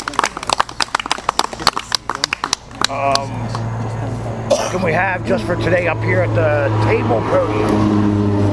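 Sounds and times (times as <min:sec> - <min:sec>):
group round of applause: 0:00.0 - 0:03.6
speech: 0:02.9 - 0:08.4.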